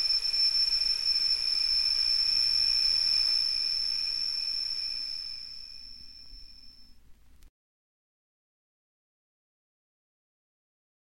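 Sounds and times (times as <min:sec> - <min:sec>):
crickets chirping: 0:00.0 - 0:06.9.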